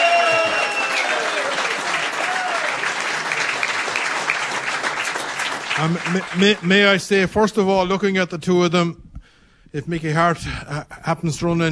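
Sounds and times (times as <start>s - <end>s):
audience applause: 0.0s - 7.2s
speech: 5.8s - 9.0s, 9.7s - 11.7s.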